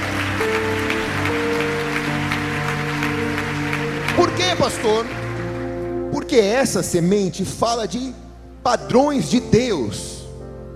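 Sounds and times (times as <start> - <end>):
audience applauding: 0.0 - 6.4
speech: 4.6 - 5.2, 6.3 - 10.2.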